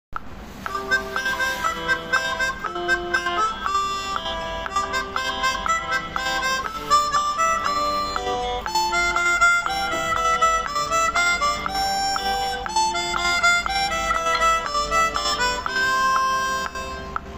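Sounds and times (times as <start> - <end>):
chromatic harmonica etude excerpt: 0.6 - 17.3.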